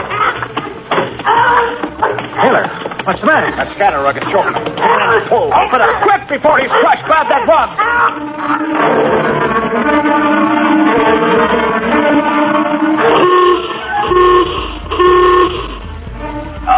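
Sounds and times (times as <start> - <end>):
laughter: 0.0 - 9.8
general alarm klaxon blaring: 2.4 - 16.7
speech: 2.5 - 10.4.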